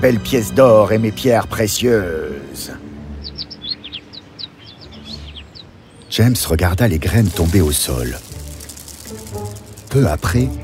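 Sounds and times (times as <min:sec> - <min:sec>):
speech: 0:00.0 - 0:02.8, 0:06.2 - 0:08.3, 0:09.9 - 0:10.6
bird chirping: 0:02.8 - 0:09.8.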